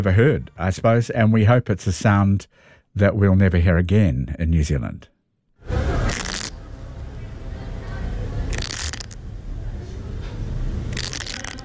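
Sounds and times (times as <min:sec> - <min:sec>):
speech: 0:00.0 - 0:05.9
yellow-legged hornet larvae scraping inside a paper nest: 0:06.1 - 0:06.6, 0:08.5 - 0:09.2, 0:10.9 - 0:11.6.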